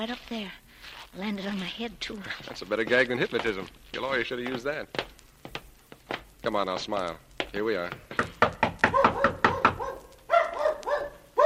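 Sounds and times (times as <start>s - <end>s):
speech: 0.0s - 5.2s, 6.4s - 8.6s
loud knocking on a door: 7.4s - 9.9s.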